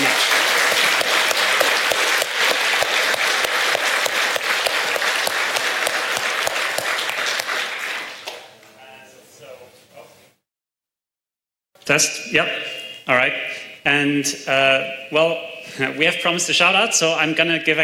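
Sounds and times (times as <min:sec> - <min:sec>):
crowd clapping: 0:00.0 - 0:08.6
speech: 0:11.9 - 0:17.8.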